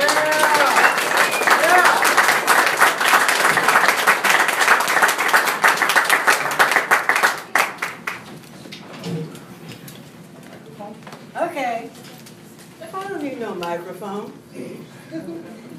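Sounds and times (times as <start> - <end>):
audience applause for a reader: 0.0 - 8.3.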